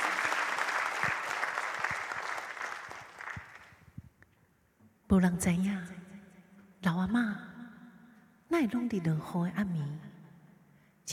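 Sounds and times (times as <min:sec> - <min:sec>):
audience applause: 0:00.0 - 0:03.8
speech: 0:05.1 - 0:06.0, 0:06.9 - 0:07.4, 0:08.6 - 0:10.1.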